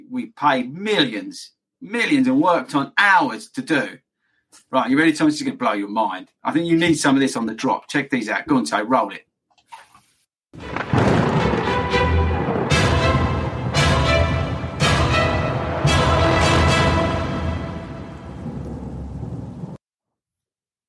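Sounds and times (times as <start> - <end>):
speech: 0.1 - 4.0, 4.6 - 9.3
rain-like roar: 10.6 - 19.8
thunder cracks: 10.6 - 19.8.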